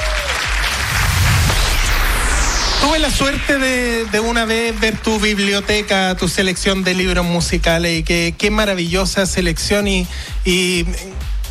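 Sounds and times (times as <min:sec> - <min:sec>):
audience applause at a music book award ceremony: 0:00.0 - 0:01.7, 0:02.9 - 0:06.9
low rumble: 0:00.6 - 0:08.3
speech: 0:02.8 - 0:11.4.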